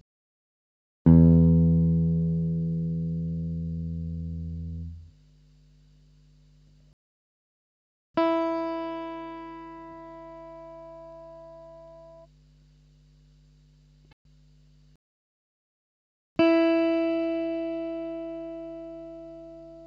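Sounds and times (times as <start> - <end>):
electric guitar: 1.1 - 5.1, 8.2 - 12.3, 16.4 - 19.8.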